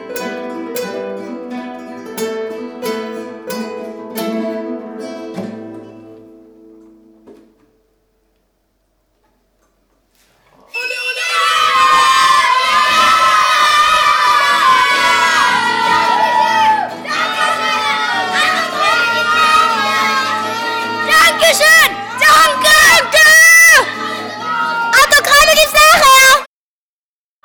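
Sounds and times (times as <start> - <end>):
flamenco music: 0.0 - 8.3, 9.3 - 26.4.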